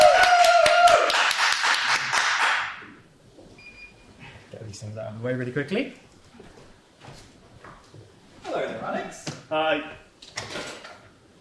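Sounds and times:
audience applause: 0:00.0 - 0:02.8
speech: 0:05.0 - 0:06.0, 0:08.9 - 0:10.0.

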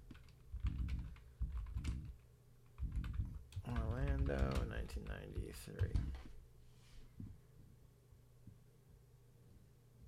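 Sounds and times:
typing on a computer keyboard: 0:00.0 - 0:06.3
speech: 0:03.7 - 0:06.3.

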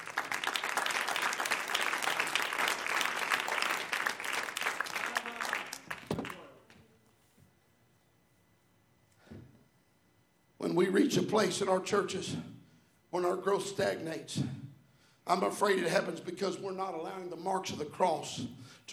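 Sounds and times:
audience clapping hands: 0:00.0 - 0:06.8
speech: 0:10.7 - 0:12.5, 0:13.2 - 0:14.5, 0:15.3 - 0:18.9.

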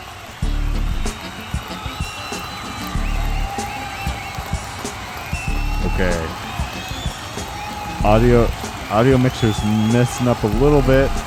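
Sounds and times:
crowd cheering: 0:00.0 - 0:11.2
speech: 0:06.0 - 0:06.4, 0:08.0 - 0:11.2.

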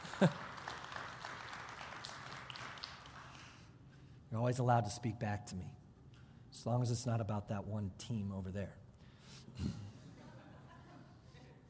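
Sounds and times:
audience applause: 0:00.0 - 0:03.5
speech: 0:00.2 - 0:00.4, 0:04.4 - 0:05.8, 0:06.6 - 0:09.8.

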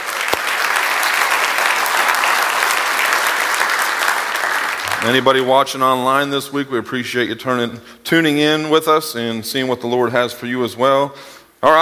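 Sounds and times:
church congregation applauding first-time guests: 0:00.0 - 0:06.0
speech: 0:05.0 - 0:11.8.

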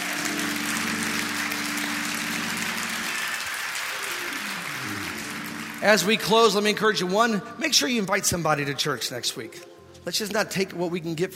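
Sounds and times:
audience clapping hands in praise: 0:00.0 - 0:07.4
speech: 0:05.8 - 0:11.3.

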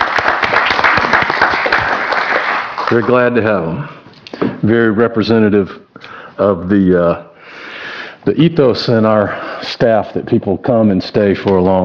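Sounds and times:
audience applause at a staff meeting: 0:00.0 - 0:03.6
speech: 0:02.9 - 0:04.0, 0:04.6 - 0:05.8, 0:06.4 - 0:07.3, 0:08.2 - 0:11.8.

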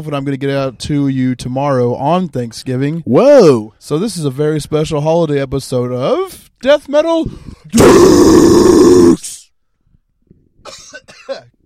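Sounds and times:
speech: 0:00.0 - 0:09.0
person coughing and hacking: 0:10.6 - 0:11.6.

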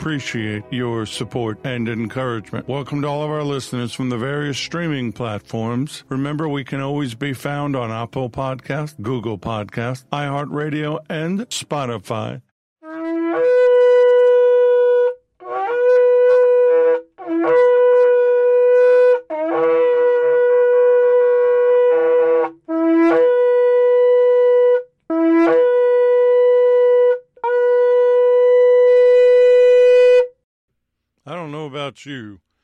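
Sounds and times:
speech: 0:00.0 - 0:12.5, 0:31.9 - 0:32.5
shofar blast: 0:12.8 - 0:30.4.

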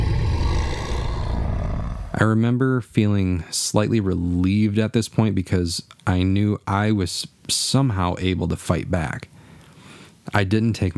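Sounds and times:
deep rumbling demon growl: 0:00.0 - 0:02.3
speech: 0:02.2 - 0:09.3, 0:10.3 - 0:10.9.

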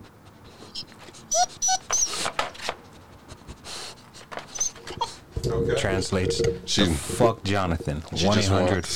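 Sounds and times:
dog sniffing and snuffling: 0:00.0 - 0:05.4
dog whimpering near the microphone: 0:00.7 - 0:02.3, 0:04.5 - 0:05.2
speech: 0:05.6 - 0:08.9.

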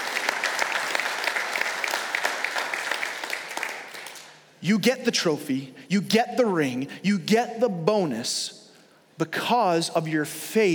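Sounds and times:
audience clapping: 0:00.0 - 0:04.4
speech: 0:04.6 - 0:08.6, 0:09.2 - 0:10.7.

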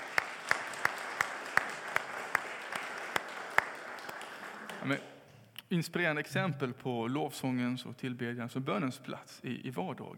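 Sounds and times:
audience applause: 0:00.0 - 0:05.1
speech: 0:04.8 - 0:05.1, 0:05.7 - 0:10.1.

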